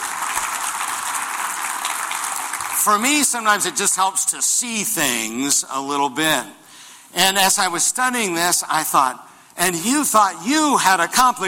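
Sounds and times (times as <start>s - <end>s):
audience applause: 0.0s - 3.4s
speech: 2.8s - 11.4s.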